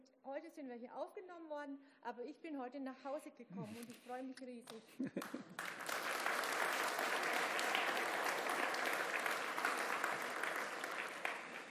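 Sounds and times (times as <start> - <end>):
speech: 0.2 - 6.0
audience applause: 5.2 - 11.6.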